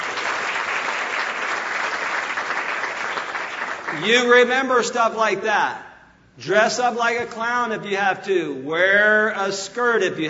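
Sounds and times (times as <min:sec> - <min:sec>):
crowd applauding: 0:00.0 - 0:04.1
speech: 0:04.0 - 0:05.8, 0:06.4 - 0:10.2.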